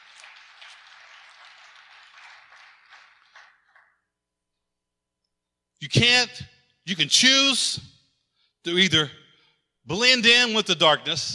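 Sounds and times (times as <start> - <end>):
audience hand clapping: 0.0 - 4.2
speech: 5.8 - 7.9, 8.6 - 9.2, 9.9 - 11.3.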